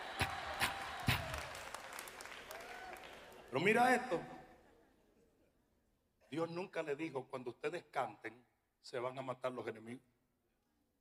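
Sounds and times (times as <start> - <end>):
Pentecostal audience clapping in unison: 0.0 - 4.1
speech: 3.5 - 4.4, 6.3 - 10.1.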